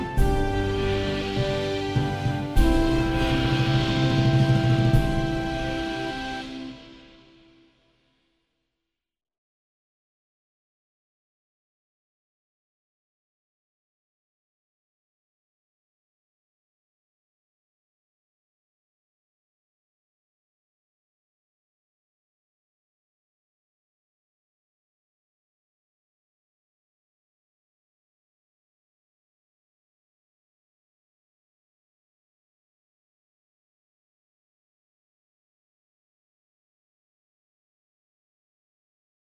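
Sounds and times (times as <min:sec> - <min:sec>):
instrumental music: 0:00.0 - 0:07.8.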